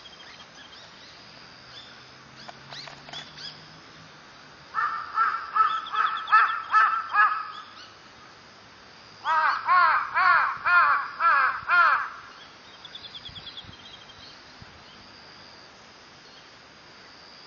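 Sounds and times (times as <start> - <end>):
low background hiss: 0.0 - 17.4
crow cawing: 4.7 - 7.7, 9.2 - 12.4.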